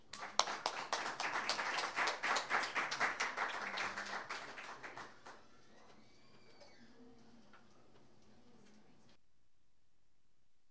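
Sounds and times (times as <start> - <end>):
audience applause welcoming a poet and songwriter: 0.0 - 6.4.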